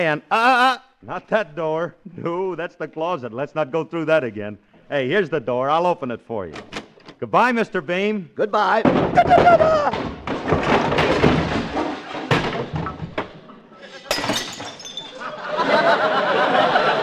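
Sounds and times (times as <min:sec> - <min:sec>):
speech: 0:00.0 - 0:10.8
person falling down cellar stairs: 0:08.8 - 0:15.2
laughter: 0:13.8 - 0:14.2, 0:15.1 - 0:17.0.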